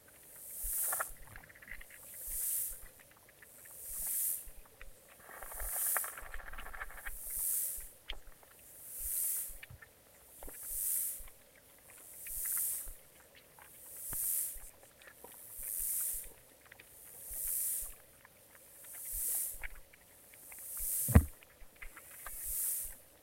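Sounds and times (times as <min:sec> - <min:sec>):
insects: 0:00.0 - 0:23.2.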